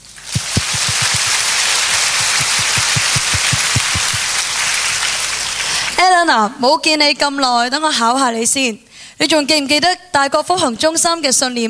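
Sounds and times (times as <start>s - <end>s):
audience applause: 0.2s - 6.0s
speech: 6.0s - 11.6s.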